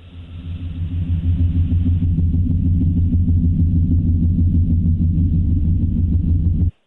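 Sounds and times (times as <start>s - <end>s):
deep steady droning hum, the mysterious worldwide low hum: 0.0s - 6.7s.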